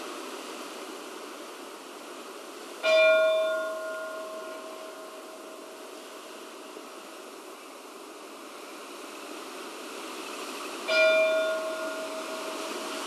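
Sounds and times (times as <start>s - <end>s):
church funeral bells ringing: 2.8s - 5.8s, 10.9s - 12.9s.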